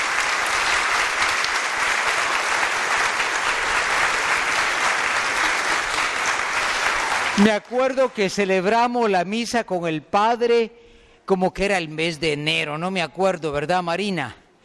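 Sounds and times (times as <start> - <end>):
crowd applauding: 0.0 - 9.0
speech: 7.4 - 14.4.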